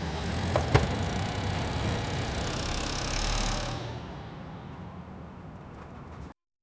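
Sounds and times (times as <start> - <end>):
bicycle being pushed in a garage: 0.2 - 6.4.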